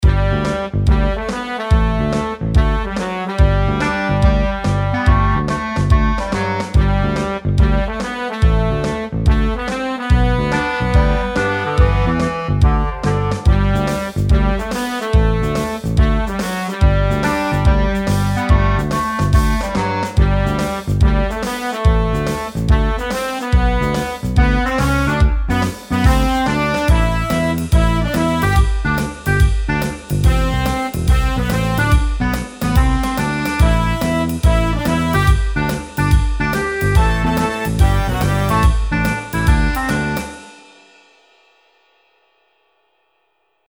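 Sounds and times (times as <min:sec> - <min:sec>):
carefree big band theme: 0:00.0 - 0:41.0.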